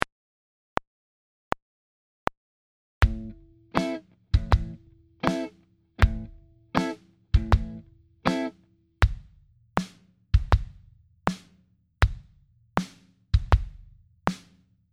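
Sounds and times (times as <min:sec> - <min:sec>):
kick and snare drum groove: 0:03.0 - 0:14.6.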